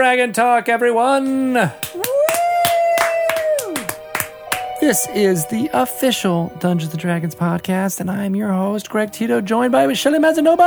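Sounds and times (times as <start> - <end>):
speech: 0.0 - 2.0, 4.8 - 10.6
hand claps opening a Dungeons & Dragons show: 1.7 - 4.9.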